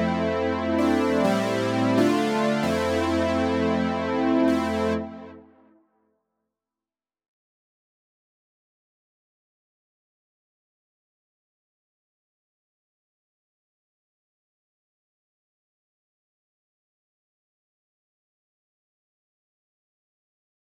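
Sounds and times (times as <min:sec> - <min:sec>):
1980s-style synth pad loop in F minor at 130 BPM: 0:00.0 - 0:05.6.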